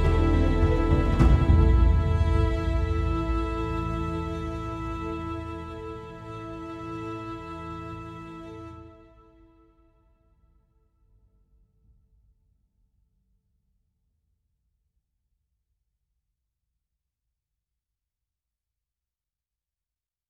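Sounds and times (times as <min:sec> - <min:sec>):
action percussion loops: 0:00.0 - 0:05.5
epic and emotional percussion beds: 0:00.0 - 0:07.0.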